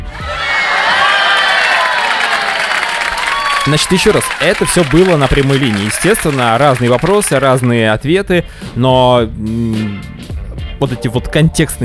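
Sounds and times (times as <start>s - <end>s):
applause and cheering: 0.0s - 7.8s
speech: 3.7s - 10.2s, 10.8s - 11.8s.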